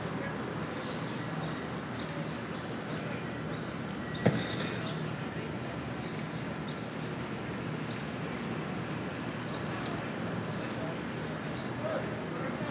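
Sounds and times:
low traffic hum in Brooklyn: 0.0s - 12.7s
murmur of indistinct voices on a Brooklyn morning: 0.0s - 12.7s.

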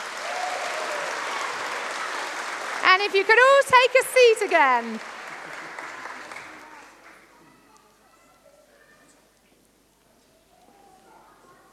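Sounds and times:
audience applause: 0.0s - 7.7s
speech: 2.9s - 5.1s.

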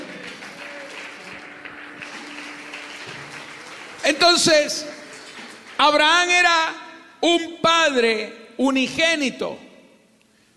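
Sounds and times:
audience applause: 0.0s - 6.4s
speech: 4.1s - 4.9s, 5.8s - 9.6s.

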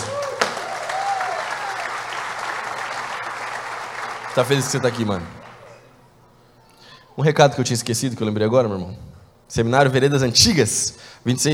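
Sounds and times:
audience applause: 0.0s - 6.1s
speech: 4.4s - 5.4s, 7.2s - 11.5s.

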